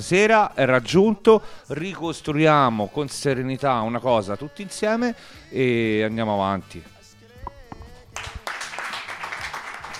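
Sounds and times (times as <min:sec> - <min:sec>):
speech: 0:00.0 - 0:06.9
audience applause: 0:08.2 - 0:09.9.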